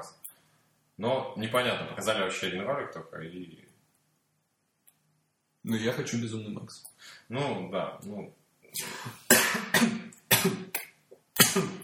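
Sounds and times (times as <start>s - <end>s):
speech: 1.0s - 3.7s, 5.6s - 10.8s, 11.6s - 11.8s
man coughing: 8.8s - 10.8s, 11.4s - 11.8s.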